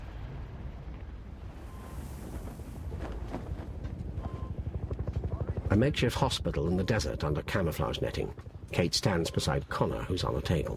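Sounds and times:
helicopter flying away from a fiery inferno: 3.0s - 10.7s
speech: 5.8s - 10.7s.

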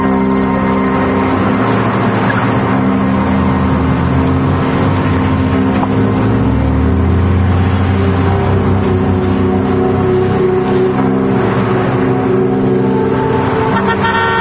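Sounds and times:
car engine driving through town: 0.0s - 14.4s
road noise: 0.0s - 14.4s
car horn toots: 13.7s - 14.4s.

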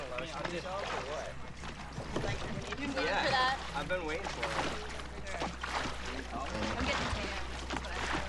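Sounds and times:
oars dipping into calm glassy lake water from a rowing boat: 0.0s - 8.2s
speech: 0.2s - 5.0s, 6.1s - 7.4s.

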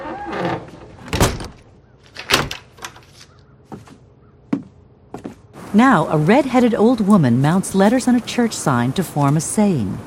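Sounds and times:
door shut by an old man with heavy thuds: 0.3s - 2.6s
speech: 5.8s - 10.0s.

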